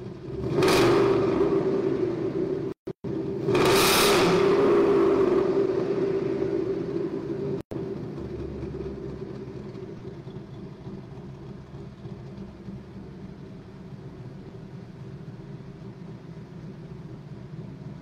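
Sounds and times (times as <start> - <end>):
engine revving: 0.0 - 10.2.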